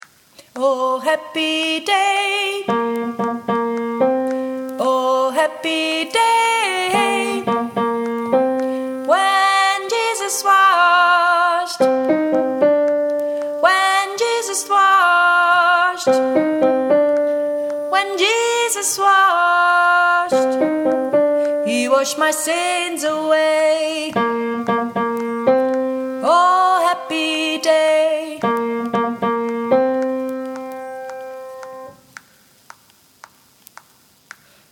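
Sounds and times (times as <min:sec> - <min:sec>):
soprano singing: 0:00.5 - 0:32.0.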